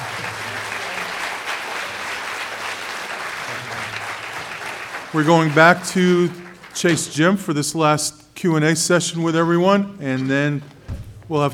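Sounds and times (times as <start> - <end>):
audience applause for panelists: 0.0 - 7.0
speech: 5.1 - 11.5.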